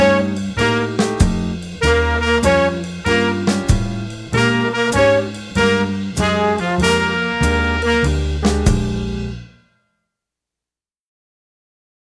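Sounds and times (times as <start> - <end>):
common riffs played: 0.0 - 9.6.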